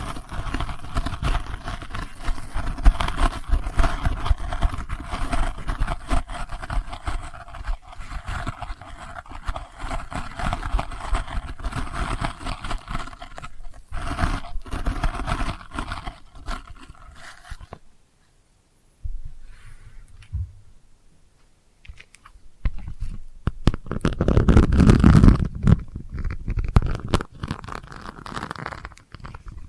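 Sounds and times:
delicate scratching: 0.0 - 17.8, 21.8 - 29.6
low rumbling thuds: 20.3 - 20.8.

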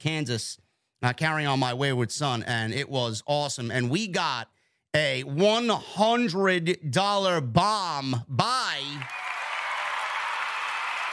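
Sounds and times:
speech: 0.0 - 9.2
applause from a group: 8.8 - 11.1.

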